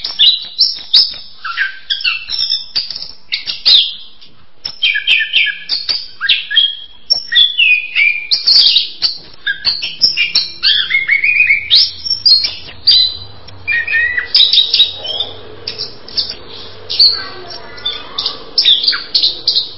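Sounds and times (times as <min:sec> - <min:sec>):
bird chirping and warbling: 0:00.0 - 0:19.7.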